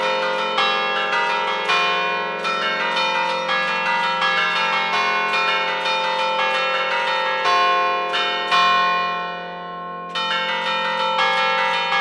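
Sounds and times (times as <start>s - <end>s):
five bells ringing a march: 0.0s - 11.9s.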